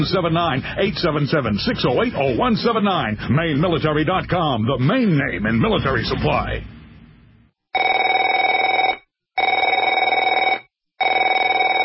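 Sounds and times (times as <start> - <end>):
speech: 0.0 - 6.7
telephone ringing with a bright trilling electronic bell: 7.7 - 11.8.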